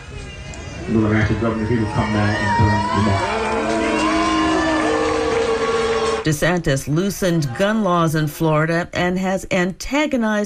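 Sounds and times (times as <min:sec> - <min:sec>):
crowd booing: 0:00.1 - 0:06.3
speech: 0:00.9 - 0:03.7, 0:06.2 - 0:10.4.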